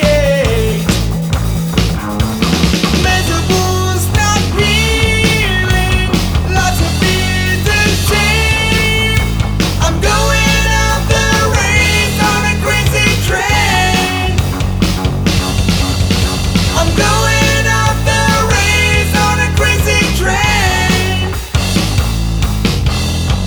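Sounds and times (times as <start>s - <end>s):
person singing: 0.0s - 0.9s, 3.0s - 14.6s, 16.7s - 21.6s
rock guitar backing track: 0.0s - 23.4s.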